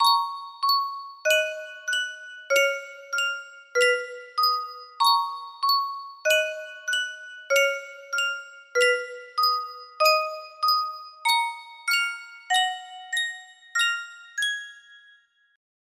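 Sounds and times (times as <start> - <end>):
music box melody: 0.0 - 15.6.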